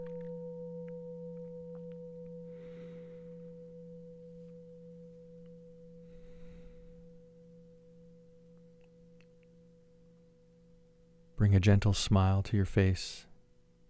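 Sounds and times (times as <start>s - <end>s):
meditation bell ringing: 0.0s - 11.4s
soft breathy swells: 2.4s - 3.9s, 5.9s - 7.6s
speech: 11.4s - 13.3s.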